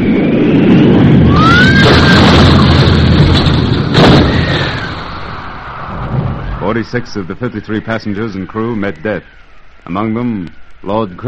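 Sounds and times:
R-101 airship crashing and exploding in a gale near Beauvais, France: 1.1 - 6.6
speech: 6.8 - 11.2.

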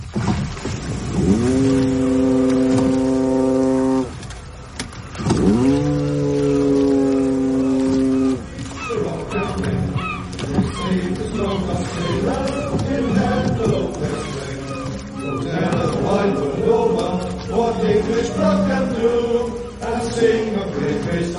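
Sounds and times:
braying: 1.2 - 4.1, 5.4 - 17.7
foghorn: 1.2 - 4.6, 5.4 - 8.5
singing: 7.6 - 21.3.

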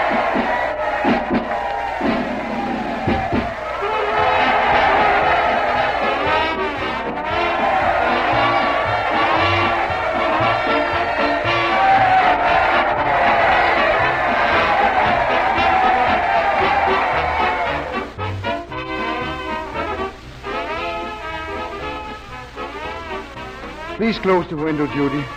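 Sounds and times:
rhythmic low thumps of marching feet: 0.0 - 18.0
large crowd roaring and cheering: 0.0 - 25.3
speech: 24.2 - 25.3.

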